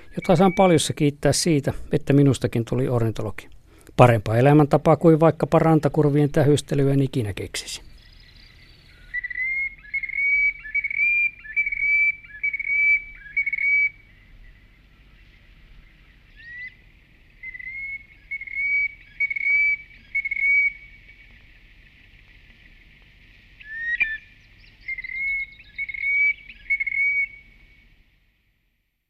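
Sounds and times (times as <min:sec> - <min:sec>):
Common sandpiper whistling: 0:00.0 - 0:00.9, 0:08.9 - 0:15.0, 0:17.4 - 0:21.4, 0:23.6 - 0:27.6
speech: 0:00.2 - 0:07.9.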